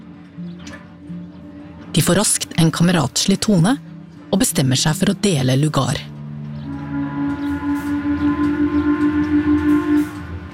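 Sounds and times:
speech: 2.0s - 6.1s
steamship funnel horn blast: 6.6s - 10.5s.

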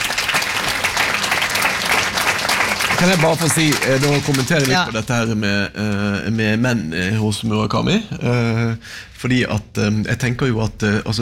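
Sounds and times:
audience applause: 0.0s - 5.0s
speech: 3.0s - 11.1s.

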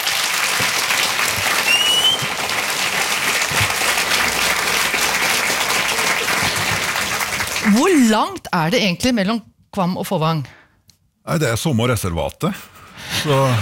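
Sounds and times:
crowd applauding: 0.0s - 8.2s
speech: 7.8s - 10.6s, 11.2s - 13.6s.

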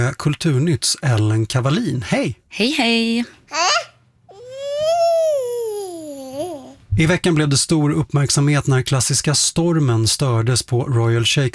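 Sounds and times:
speech: 0.0s - 3.9s, 7.0s - 11.5s
baby babbling and crying in theatre audience: 3.5s - 6.8s.

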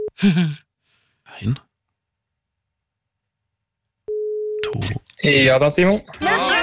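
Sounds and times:
speech: 0.2s - 0.7s, 1.3s - 1.7s, 4.7s - 6.5s
telephone ringing tone on outgoing call: 4.1s - 4.6s.

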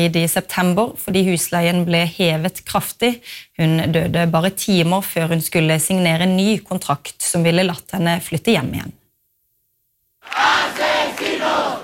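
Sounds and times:
speech: 0.0s - 9.0s, 10.2s - 10.9s
protesters chanting: 10.2s - 11.8s.

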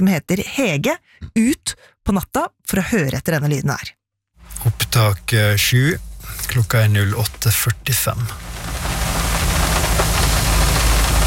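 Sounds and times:
speech: 0.0s - 8.7s
rain against a car window: 4.5s - 11.2s.

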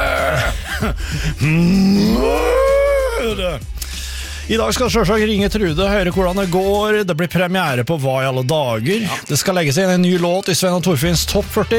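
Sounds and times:
person imitating a cow mooing: 0.0s - 0.6s, 1.4s - 3.6s
speech: 0.8s - 2.5s, 3.2s - 3.8s, 4.5s - 11.7s.

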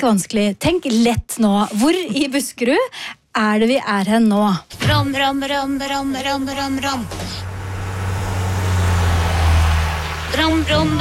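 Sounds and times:
speech: 0.0s - 7.4s, 10.3s - 10.9s
road traffic passing in Buskerud Norway: 5.5s - 10.9s.

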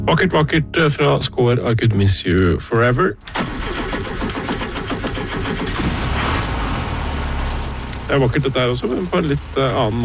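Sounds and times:
speech: 0.1s - 3.4s, 8.1s - 10.0s
1970 Volkswagen Beetle air-cooled engine running: 3.2s - 10.0s.

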